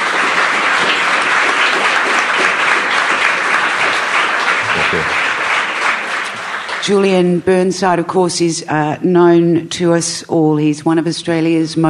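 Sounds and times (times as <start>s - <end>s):
audience applause at a Human Rights Watch event: 0.0s - 7.5s
speech: 6.9s - 11.8s.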